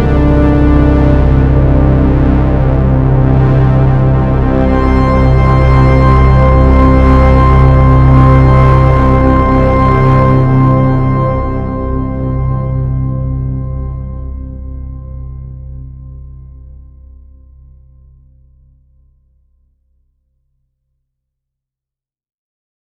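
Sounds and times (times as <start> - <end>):
Prophet '08 analog synthesizer: 0.0 - 17.9.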